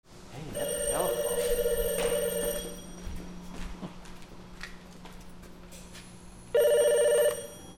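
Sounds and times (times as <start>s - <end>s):
phones: 0.5s - 3.2s, 6.5s - 7.7s.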